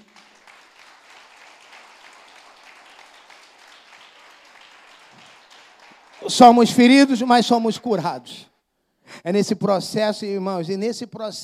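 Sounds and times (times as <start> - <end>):
audience applauding: 0.0 - 7.3
speech: 6.2 - 8.5, 9.2 - 11.4.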